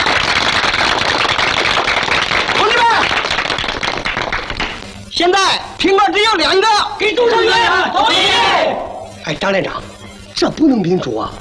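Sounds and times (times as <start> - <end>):
group applause: 0.0 - 4.9
speech: 5.5 - 11.3.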